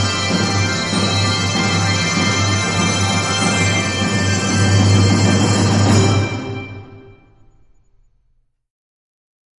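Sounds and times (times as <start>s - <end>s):
4-5 octave handbells ringing: 0.0s - 7.5s.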